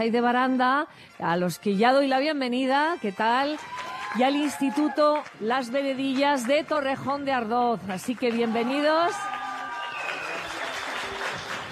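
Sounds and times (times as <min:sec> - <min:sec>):
speech: 0:00.0 - 0:09.4
school students applauding at a quiz competition: 0:03.4 - 0:11.7.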